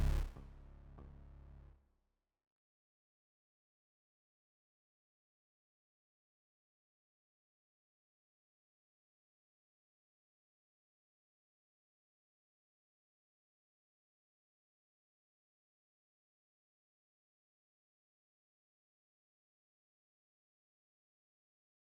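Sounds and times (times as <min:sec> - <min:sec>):
bass: 0:00.0 - 0:01.8.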